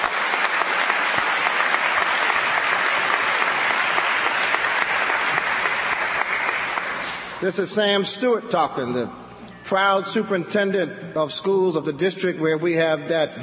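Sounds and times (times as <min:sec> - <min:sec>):
round of applause: 0:00.0 - 0:07.4
speech: 0:07.4 - 0:13.4.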